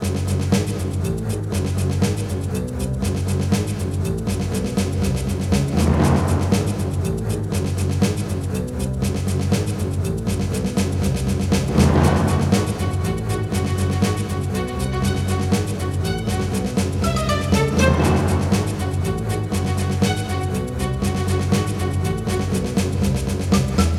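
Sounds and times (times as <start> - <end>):
boss combat game music: 0.1 - 23.9.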